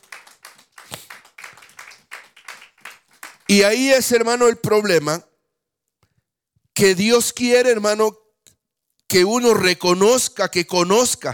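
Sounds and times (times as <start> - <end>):
audience clapping hands in a steady rhythm: 0.0 - 4.1
speech: 3.5 - 5.3, 6.8 - 8.2, 9.1 - 11.3.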